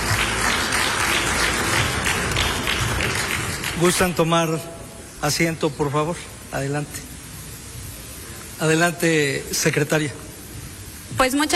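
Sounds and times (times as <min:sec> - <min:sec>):
audience applause: 0:00.0 - 0:04.3
speech: 0:03.8 - 0:07.1, 0:08.6 - 0:10.3, 0:11.2 - 0:11.5.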